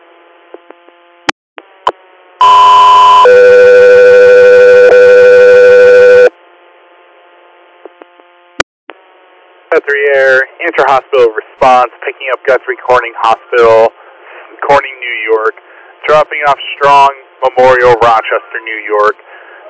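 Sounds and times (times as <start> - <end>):
dispatch alert tones: 2.4 - 6.3
speech: 9.8 - 14.0, 14.7 - 19.3.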